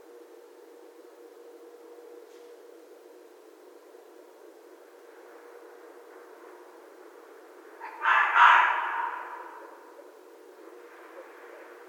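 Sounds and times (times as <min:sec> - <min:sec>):
red fox hoarse cry: 0:07.8 - 0:09.7.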